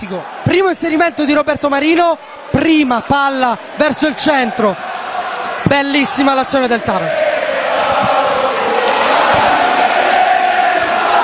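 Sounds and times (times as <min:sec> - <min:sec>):
speech: 0:00.0 - 0:04.9, 0:05.6 - 0:07.2
large football crowd chanting a player's name in unison: 0:00.0 - 0:11.2.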